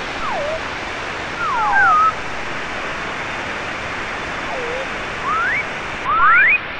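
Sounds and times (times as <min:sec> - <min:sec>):
forestry sound effect from E-mu Proteus FX factory preset: 0:00.2 - 0:00.7, 0:01.4 - 0:02.4, 0:04.5 - 0:06.6.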